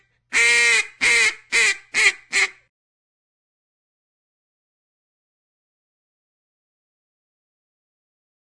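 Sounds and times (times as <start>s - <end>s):
duck: 0.0s - 2.6s.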